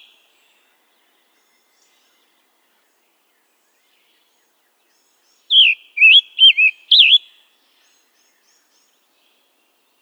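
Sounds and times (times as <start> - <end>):
Scarlet tanager calling with sharp clicks and short burry notes: 5.5 - 7.3.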